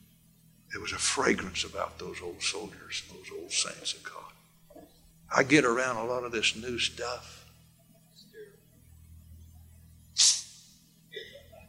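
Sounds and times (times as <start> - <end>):
speech: 0.7 - 4.4, 5.3 - 7.4
nose blowing: 10.2 - 10.6.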